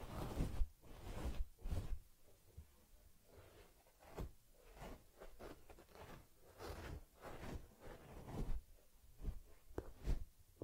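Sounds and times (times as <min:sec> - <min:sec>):
rubbing and combing on a teddy bear's fur: 0:00.0 - 0:02.0, 0:03.3 - 0:08.6, 0:09.2 - 0:10.3.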